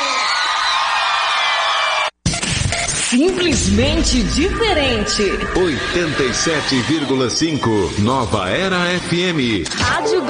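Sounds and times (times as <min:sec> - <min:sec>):
crowd cheering and shouting on cue: 0:00.0 - 0:02.2, 0:03.3 - 0:08.2
speech: 0:03.1 - 0:10.2.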